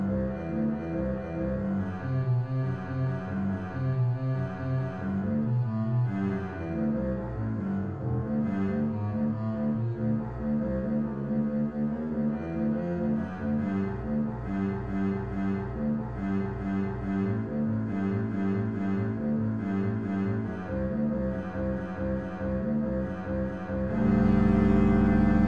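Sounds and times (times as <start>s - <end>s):
prelude music: 0.0s - 25.4s.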